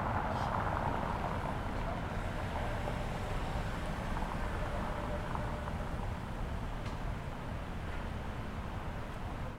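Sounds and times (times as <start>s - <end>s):
street ambience: 0.0s - 9.5s.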